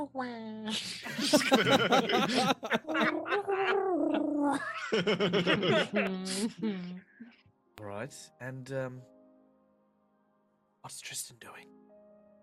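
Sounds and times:
speech: 0.0 - 3.3, 4.5 - 7.1, 7.8 - 9.1, 10.8 - 11.8
person chuckling: 1.0 - 3.8, 4.5 - 6.7
person imitating a weird cooing noise: 2.3 - 4.8.

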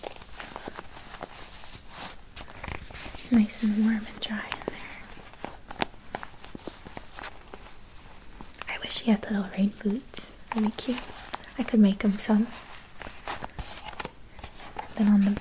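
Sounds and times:
toy's plastic raincoat crinkling: 0.0 - 15.3
person speaking softly, almost in a whisper: 3.2 - 5.3, 8.6 - 12.6, 14.9 - 15.3
speech: 3.3 - 4.6, 9.0 - 12.6, 15.0 - 15.3.

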